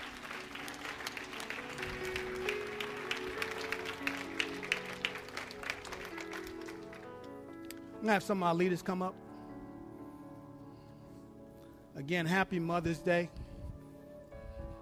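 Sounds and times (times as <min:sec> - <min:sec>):
audience clapping hands: 0:00.0 - 0:07.8
speech: 0:08.0 - 0:09.2, 0:12.0 - 0:13.4.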